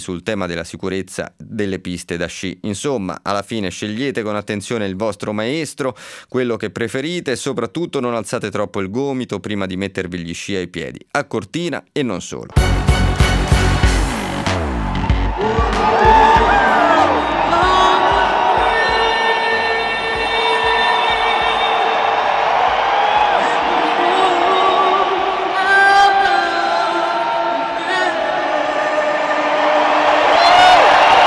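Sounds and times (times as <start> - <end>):
speech: 0.0 - 12.9
stadium crowd of 80,000 roaring and chanting: 12.6 - 31.2.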